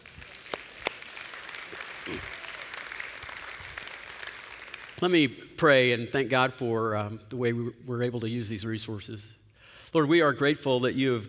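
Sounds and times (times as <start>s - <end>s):
audience applause: 0.0s - 5.0s
speech: 5.0s - 11.2s.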